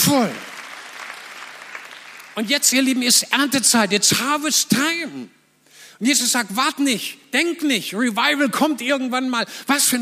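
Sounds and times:
audience applause: 0.0s - 2.9s
speech: 0.1s - 0.5s, 2.4s - 5.4s, 6.0s - 10.0s.

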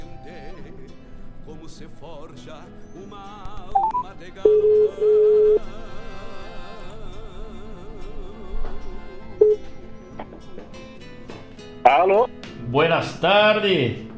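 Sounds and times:
speech: 1.7s - 5.9s, 11.9s - 14.1s
short beep: 3.8s - 5.6s
telephone line dialling tones: 3.8s - 5.7s, 9.4s - 9.6s, 11.8s - 12.3s.

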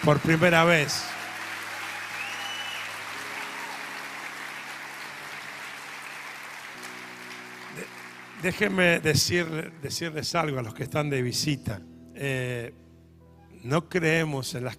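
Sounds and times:
speech: 0.0s - 1.2s, 8.4s - 12.8s, 13.6s - 14.7s
audience applause for first-time visitors: 0.0s - 9.5s.

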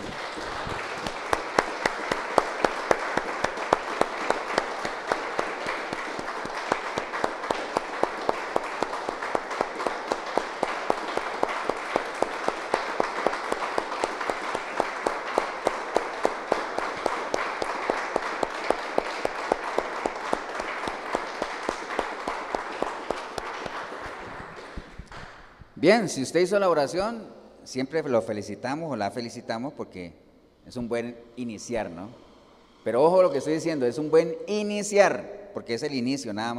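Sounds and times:
audience applause: 0.0s - 25.6s
speech: 25.8s - 32.2s, 32.8s - 36.5s.

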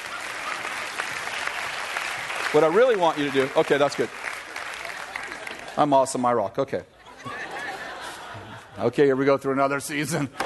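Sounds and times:
audience clapping: 0.0s - 6.2s
speech: 2.5s - 4.3s, 5.8s - 6.9s, 8.8s - 10.4s
laughter: 7.0s - 9.2s, 9.9s - 10.4s.

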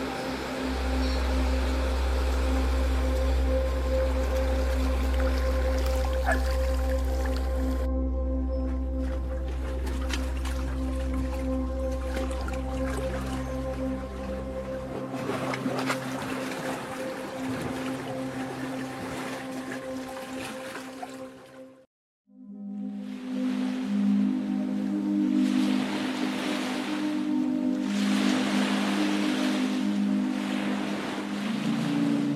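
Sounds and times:
sea waves: 0.0s - 7.9s, 9.0s - 21.8s, 23.0s - 32.3s
deep low drone: 0.0s - 20.6s
relaxing sleep music with sustained tones: 0.0s - 32.3s.

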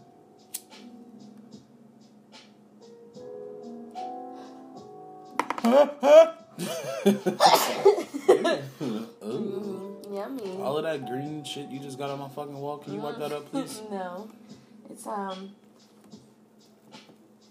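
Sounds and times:
speech: 5.7s - 15.6s
person sneezing: 7.4s - 8.0s, 8.8s - 9.1s.

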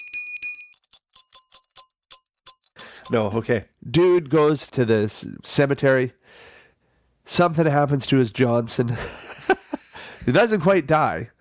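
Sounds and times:
hand bell being rung: 0.0s - 3.2s
speech: 3.1s - 6.5s, 7.3s - 9.6s, 10.3s - 11.4s.

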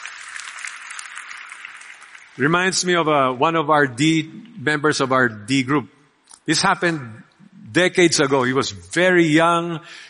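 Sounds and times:
audience clapping: 0.0s - 2.8s
speech: 2.4s - 10.0s.

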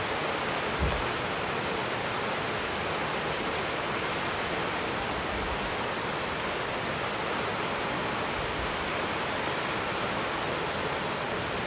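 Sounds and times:
rain pouring: 0.0s - 11.6s
small thump: 0.8s - 1.1s.

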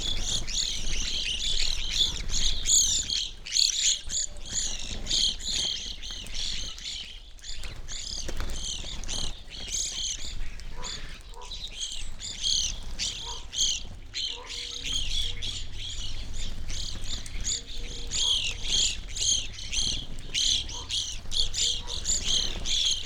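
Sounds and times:
evening grosbeak flock calling: 0.0s - 23.0s
low rumble: 13.2s - 23.0s.

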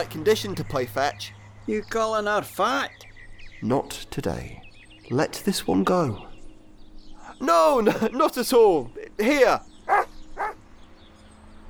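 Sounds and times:
speech: 0.0s - 6.3s, 7.4s - 10.0s
laughter: 7.6s - 9.6s
dog barking: 9.9s - 10.6s.

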